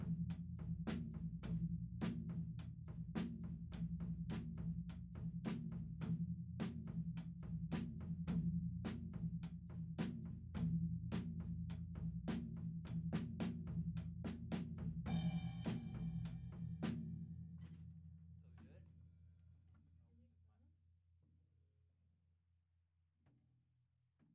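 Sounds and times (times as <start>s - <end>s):
tom drum: 0.0s - 17.0s.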